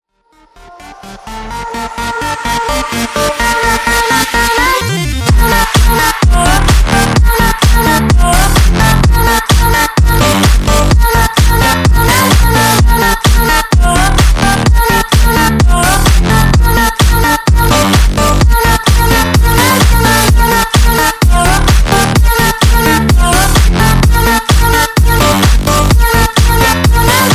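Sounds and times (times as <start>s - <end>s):
electro house music: 0.3s - 27.3s.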